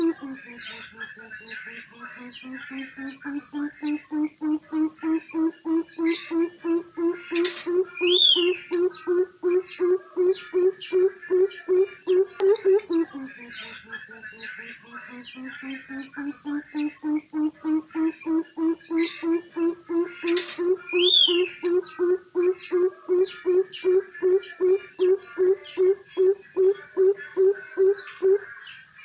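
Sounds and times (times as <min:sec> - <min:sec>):
coucal bird calling: 0:00.0 - 0:28.5.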